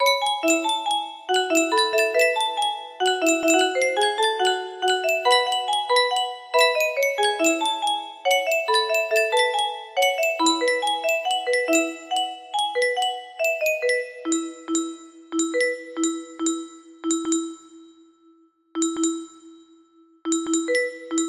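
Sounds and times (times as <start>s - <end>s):
music box melody: 0.0s - 18.2s, 18.8s - 21.2s.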